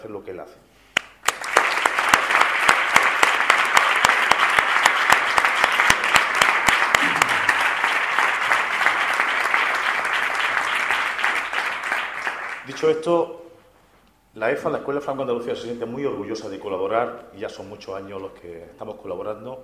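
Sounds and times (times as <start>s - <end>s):
speech: 0.0s - 0.8s, 12.7s - 13.4s, 14.4s - 19.6s
audience applause: 1.2s - 13.0s.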